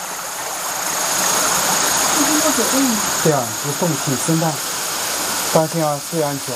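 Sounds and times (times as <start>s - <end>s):
water rushing inside a cave: 0.0s - 6.5s
speech: 2.5s - 4.7s, 5.5s - 6.5s.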